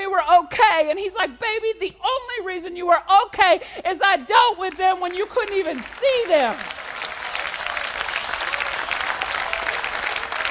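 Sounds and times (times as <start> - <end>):
speech: 0.3 - 6.8
audience hand clapping: 4.6 - 10.4.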